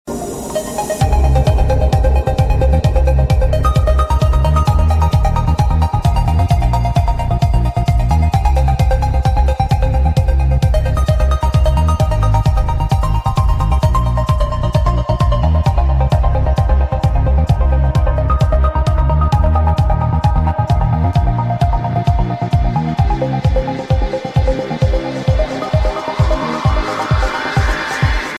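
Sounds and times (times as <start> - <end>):
trance ringtone: 0.1 - 28.3.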